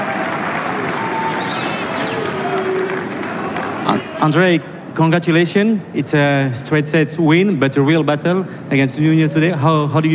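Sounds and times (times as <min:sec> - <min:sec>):
tennis crowd applause: 0:00.0 - 0:04.5
speech: 0:04.2 - 0:10.1.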